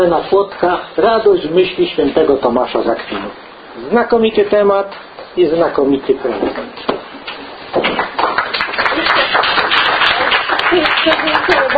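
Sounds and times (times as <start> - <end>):
speech: 0.0 - 7.1
audience applause for lecture speaker: 7.9 - 11.7.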